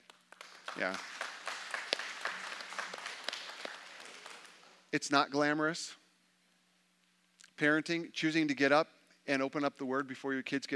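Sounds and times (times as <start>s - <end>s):
audience applause: 0.1s - 4.7s
speech: 0.8s - 1.2s, 4.9s - 6.0s, 7.6s - 10.7s.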